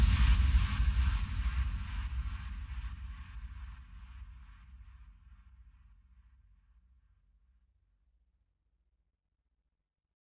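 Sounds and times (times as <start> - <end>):
low bass: 0.0 - 5.4.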